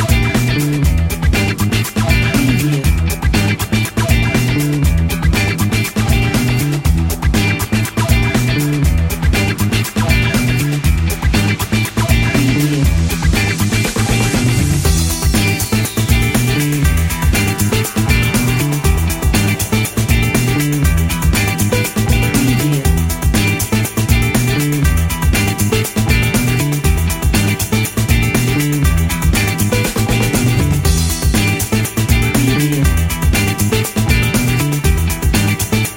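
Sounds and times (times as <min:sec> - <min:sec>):
upbeat energetic funk music: 0:00.0 - 0:35.9.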